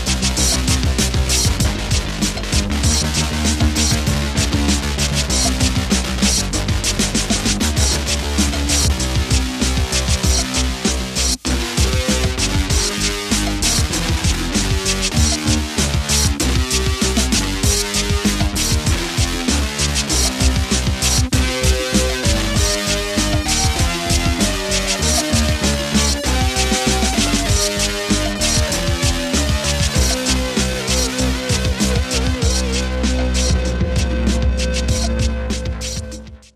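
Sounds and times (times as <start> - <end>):
Juno-60 synthesizer: 0.0 - 36.5.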